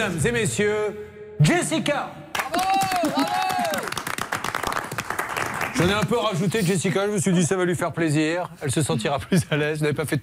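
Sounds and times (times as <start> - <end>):
speech: 0.0 - 2.3, 5.8 - 10.2
audience applause: 2.4 - 6.3.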